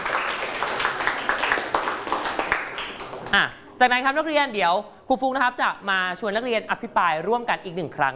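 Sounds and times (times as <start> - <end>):
students clapping: 0.0 - 3.4
speech: 3.3 - 8.1.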